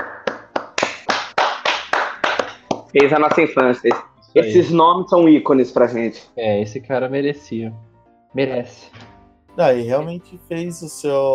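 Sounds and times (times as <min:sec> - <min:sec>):
round of applause, clapping: 0:00.0 - 0:04.1
speech: 0:02.9 - 0:11.3.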